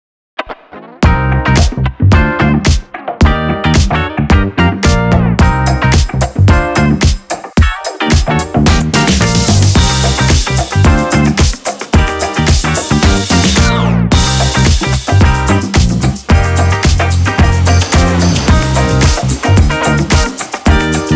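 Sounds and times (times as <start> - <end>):
transposed dance music: 1.0 - 21.1.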